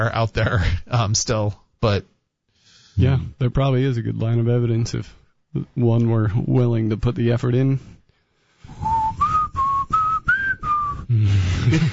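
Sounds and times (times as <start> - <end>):
speech: 0.0 - 2.1, 3.0 - 8.0, 11.1 - 11.9
person whistling a TV theme tune: 8.7 - 11.4.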